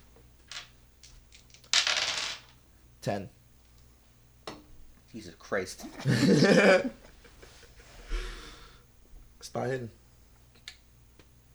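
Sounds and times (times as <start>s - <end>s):
dice clattering onto a hard surface: 0.5s - 2.6s
speech: 3.0s - 3.4s, 5.2s - 7.0s, 9.5s - 10.0s
laughter: 5.8s - 7.1s.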